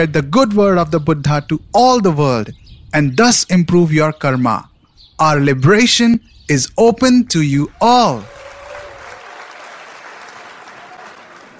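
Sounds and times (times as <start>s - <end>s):
speech: 0.0s - 8.4s
crowd rumbling assent: 7.7s - 11.5s.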